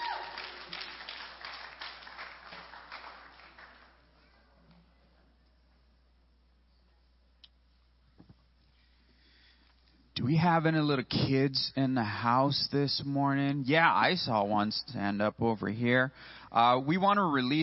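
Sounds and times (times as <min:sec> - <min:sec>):
crowd applause: 0:00.0 - 0:04.2
speech: 0:10.2 - 0:17.6.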